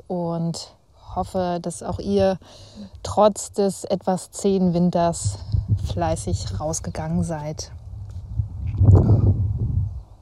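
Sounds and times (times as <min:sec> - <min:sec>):
wind outdoors: 0:00.0 - 0:10.1
speech: 0:00.1 - 0:07.8.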